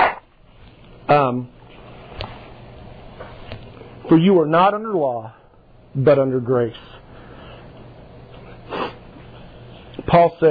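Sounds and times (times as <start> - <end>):
speech: 1.1 - 1.6, 4.1 - 5.4, 6.0 - 6.9, 10.2 - 10.4
person blowing nose into microphone: 8.7 - 9.0.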